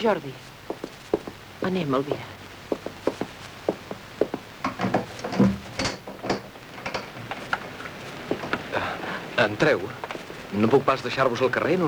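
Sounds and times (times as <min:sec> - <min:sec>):
speech: 0:00.0 - 0:00.5, 0:01.6 - 0:02.4, 0:09.4 - 0:11.8
door creaking and scraping as it is opened: 0:02.7 - 0:11.1.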